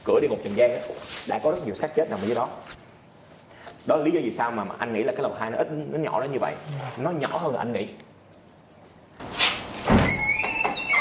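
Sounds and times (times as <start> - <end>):
speech: 0.1 - 2.8, 3.9 - 8.0
door opening: 9.4 - 10.9.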